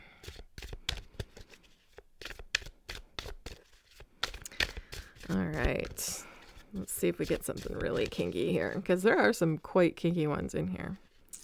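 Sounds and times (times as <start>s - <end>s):
shuffling a deck of cards: 0.2s - 9.0s
speech: 5.3s - 11.1s.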